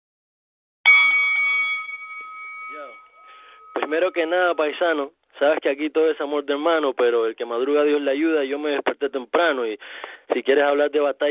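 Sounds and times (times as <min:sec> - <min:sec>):
bell ringing: 0:00.9 - 0:04.7
speech: 0:02.7 - 0:03.1, 0:03.8 - 0:11.2.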